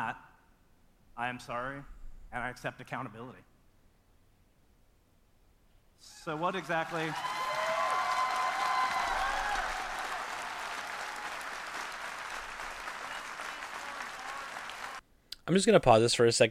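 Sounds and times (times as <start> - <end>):
speech: 1.2 - 3.5, 6.0 - 7.4, 15.5 - 16.4
shouted whoops: 6.1 - 11.9, 12.9 - 15.0
large crowd applause: 6.2 - 15.0.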